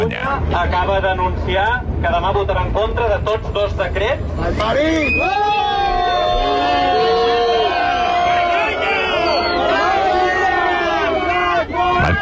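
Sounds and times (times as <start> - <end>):
speech: 0.0 - 7.1
large protest crowd shouting and chanting at encampment: 4.9 - 12.2.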